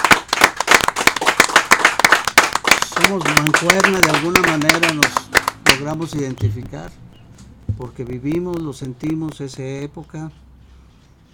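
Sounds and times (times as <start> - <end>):
audience applause: 0.0 - 6.0
speech: 3.0 - 7.1, 7.8 - 10.4.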